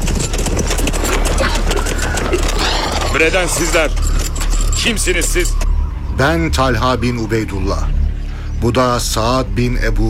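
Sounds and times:
dense clatter of many hoofbeats of riders on horseback: 0.0 - 5.7
speech: 3.2 - 4.1, 4.8 - 5.6, 6.2 - 8.0, 8.6 - 10.0.

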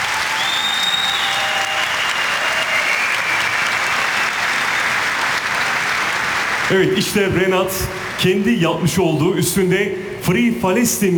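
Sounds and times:
audience applause at a public event with the Turkish president: 0.0 - 8.5
speech: 6.7 - 11.1.

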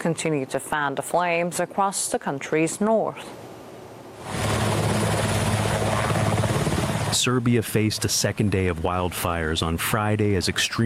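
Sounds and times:
speech: 0.0 - 3.5, 7.1 - 10.8
helicopters battling wildfires in Serbia: 4.2 - 9.6.

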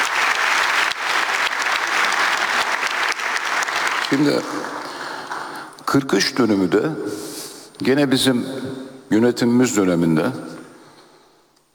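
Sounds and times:
audience applause: 0.0 - 5.7
speech: 4.1 - 4.8, 5.9 - 10.5.

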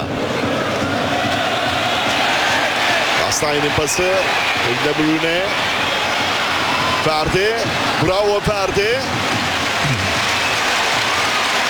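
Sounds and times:
Turkish national team football fans clapping in a stadium: 1.0 - 11.6
speech: 3.4 - 5.8, 7.0 - 9.3.

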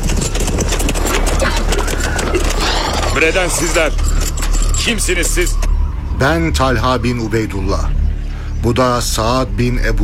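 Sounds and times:
horses carrying riders approaching, hoofbeats: 0.0 - 4.8
speech: 3.2 - 4.1, 4.8 - 8.0, 8.6 - 10.0.

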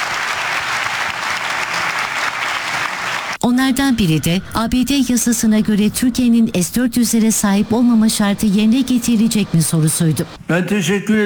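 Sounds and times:
long crowd applause in a press hall: 0.0 - 3.4
speech: 3.6 - 11.2.

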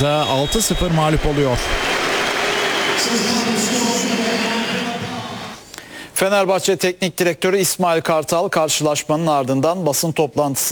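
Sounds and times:
speech: 0.0 - 2.1, 3.0 - 4.7, 6.2 - 10.7
referee's final whistle at football match: 0.0 - 3.5.

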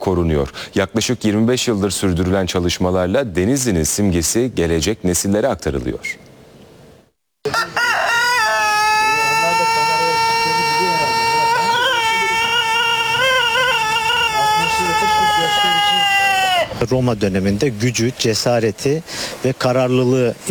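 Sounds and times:
speech: 0.0 - 6.3, 16.8 - 20.4
Denizli rooster crowing: 7.5 - 16.8.

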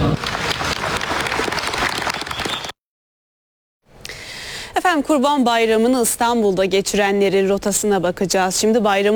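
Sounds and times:
Turkish pilgrims applauding President Erdoğan: 0.1 - 2.7
speech: 4.9 - 9.1.

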